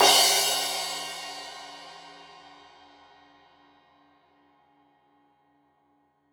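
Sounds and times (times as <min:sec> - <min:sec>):
15 inch crash cymbal edge hit: 0:00.0 - 0:02.7.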